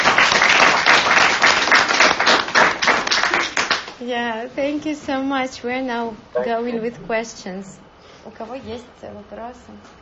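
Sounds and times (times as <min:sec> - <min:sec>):
group applause at a sobriety support meeting: 0:00.0 - 0:04.0
speech: 0:04.1 - 0:10.0.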